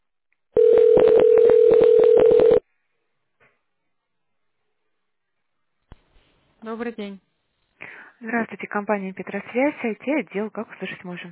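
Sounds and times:
steady telephone tone: 0:00.6 - 0:02.6
speech: 0:06.8 - 0:07.3, 0:08.2 - 0:11.3.

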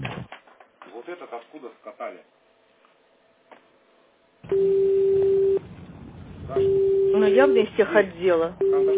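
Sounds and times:
speech: 0:01.1 - 0:02.4, 0:06.5 - 0:08.9
telephone ringback tone while a call is being dialled: 0:04.5 - 0:05.6, 0:06.5 - 0:07.8, 0:08.6 - 0:08.9.

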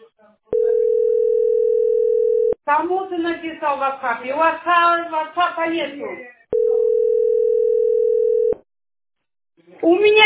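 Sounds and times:
telephone dial tone: 0:00.6 - 0:02.6, 0:06.6 - 0:08.6
speech: 0:02.7 - 0:06.4, 0:09.8 - 0:10.2.

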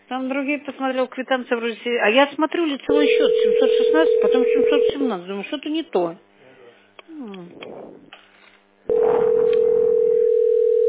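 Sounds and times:
speech: 0:00.1 - 0:06.3
telephone dial tone while calling: 0:03.0 - 0:05.0, 0:08.9 - 0:10.8.

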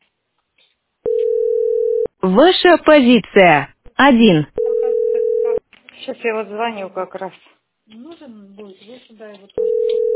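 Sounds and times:
telephone line tone during a call: 0:01.1 - 0:02.1, 0:04.6 - 0:05.6, 0:09.6 - 0:10.1
speech: 0:02.2 - 0:04.5, 0:06.1 - 0:10.1.

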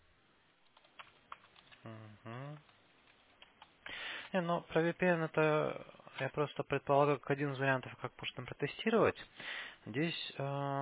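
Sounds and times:
typing on a computer keyboard: 0:00.6 - 0:01.9
speech: 0:01.8 - 0:02.7, 0:04.3 - 0:10.8.

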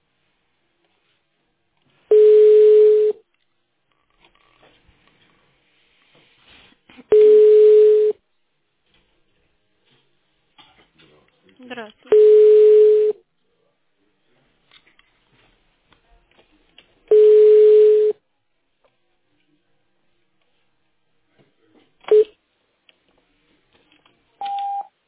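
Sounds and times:
telephone ringback tones while a call is connected: 0:02.1 - 0:03.2, 0:07.1 - 0:08.2, 0:12.1 - 0:13.2, 0:17.1 - 0:18.2, 0:24.4 - 0:24.9.

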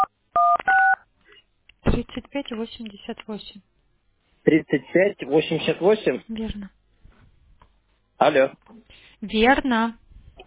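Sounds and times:
phone keypad touch-tone beeps: 0:00.0 - 0:01.0
speech: 0:02.1 - 0:03.8, 0:04.4 - 0:06.8, 0:08.2 - 0:10.0.

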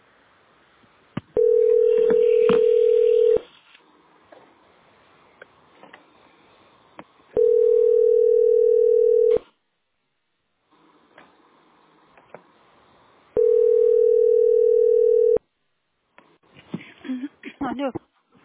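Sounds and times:
phone line ringback tone: 0:01.4 - 0:03.4, 0:07.4 - 0:09.4, 0:13.4 - 0:15.4
person talking: 0:17.0 - 0:18.1.

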